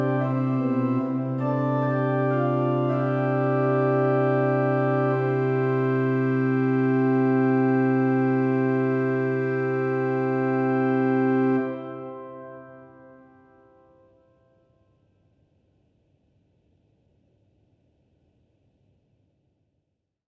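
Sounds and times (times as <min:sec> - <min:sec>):
organ prelude in C major: 0:00.0 - 0:13.9.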